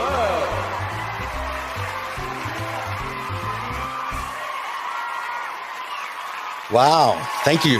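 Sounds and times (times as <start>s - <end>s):
bouncy bass-heavy music sting: 0.0s - 4.4s
crowd applause and cheering: 0.0s - 7.7s
speech: 6.7s - 7.7s.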